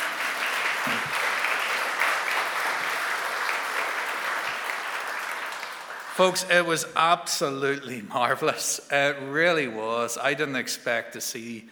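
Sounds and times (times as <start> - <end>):
audience applause: 0.0 - 6.5
speech: 6.2 - 11.6.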